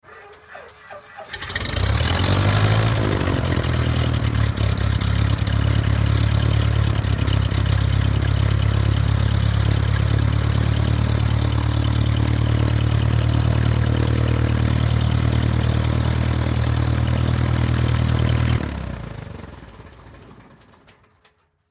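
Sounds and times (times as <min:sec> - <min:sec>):
Cessna propeller airplane engine starting, idling and stopping: 0:00.3 - 0:20.9.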